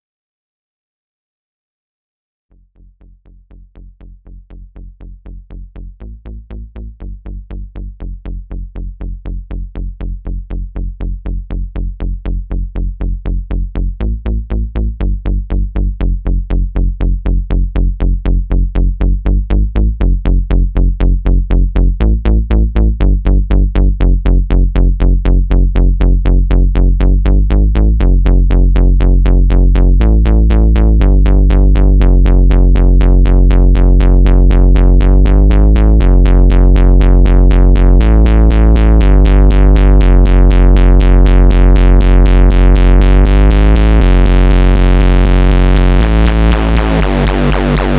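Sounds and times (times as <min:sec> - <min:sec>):
bass: 0:02.5 - 0:47.9.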